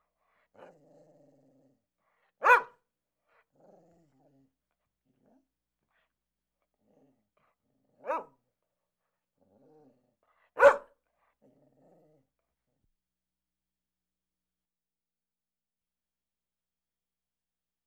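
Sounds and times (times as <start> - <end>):
dog barking: 2.4 - 2.8, 8.0 - 8.4, 10.6 - 11.0.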